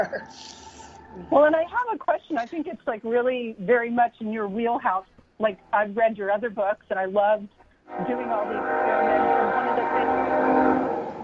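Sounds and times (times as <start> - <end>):
train in Kansas droning: 0.0 - 3.0, 7.9 - 11.2
speech: 0.0 - 10.2.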